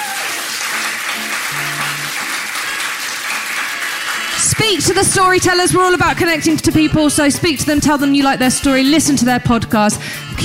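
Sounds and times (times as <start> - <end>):
audience round of applause: 0.0 - 5.6
speech: 4.6 - 10.4.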